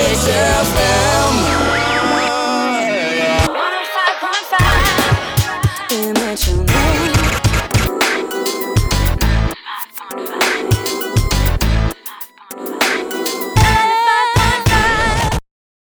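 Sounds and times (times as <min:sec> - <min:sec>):
station jingle: 0:00.1 - 0:05.9, 0:06.7 - 0:14.8.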